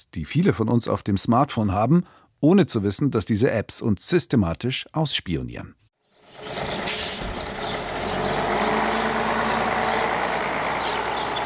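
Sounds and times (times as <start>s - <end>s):
speech: 0.0s - 7.0s
continuous low drone of traffic: 6.0s - 11.4s
heavy truck engine rumbling at a roadside bus stop: 6.2s - 11.4s
air brakes hissing: 6.8s - 7.4s.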